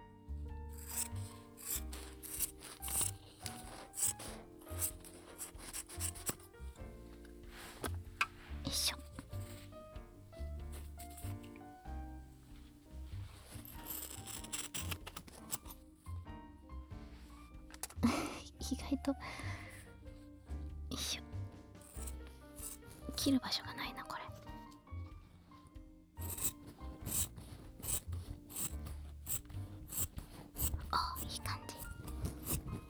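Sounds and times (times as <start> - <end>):
soft music: 0.0 - 32.8
scissors snipping through cloth: 0.7 - 11.8, 12.5 - 15.9, 21.8 - 23.2, 26.2 - 32.8.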